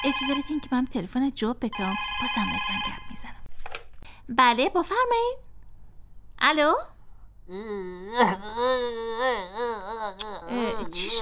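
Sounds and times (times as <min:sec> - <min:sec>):
speech: 0:00.0 - 0:03.4, 0:04.3 - 0:05.5, 0:06.4 - 0:06.9, 0:07.5 - 0:11.2
child crying: 0:07.5 - 0:11.2.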